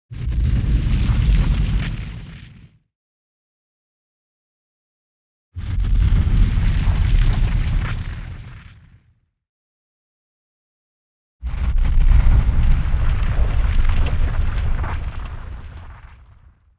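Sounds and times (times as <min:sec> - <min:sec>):
explosion: 0:00.1 - 0:02.8, 0:05.6 - 0:09.2, 0:11.4 - 0:16.7.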